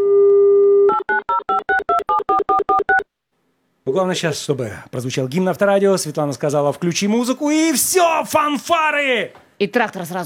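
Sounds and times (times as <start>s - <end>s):
telephone dial tone: 0.0s - 3.0s
speech: 3.9s - 10.2s.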